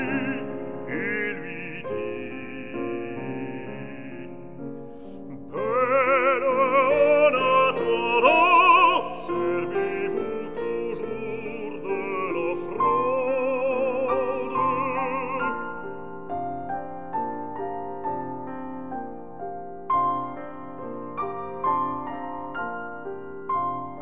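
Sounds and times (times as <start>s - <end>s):
person singing a song cycle: 0.0s - 16.1s
piano: 0.0s - 24.0s.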